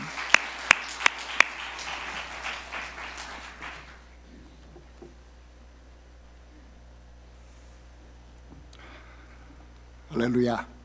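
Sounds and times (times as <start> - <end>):
audience applause: 0.0 - 4.1
speech: 10.2 - 10.8.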